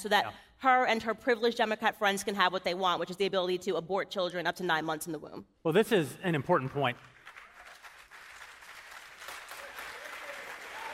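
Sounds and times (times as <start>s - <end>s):
speech: 0.0s - 7.1s
audience applause: 7.1s - 10.9s.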